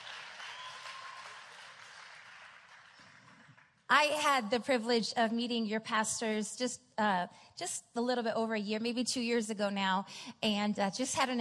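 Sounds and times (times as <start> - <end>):
audience clapping: 0.0 - 3.9
speech: 3.9 - 11.3.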